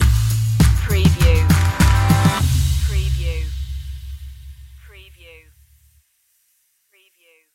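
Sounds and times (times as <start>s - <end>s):
music stinger: 0.0s - 4.9s.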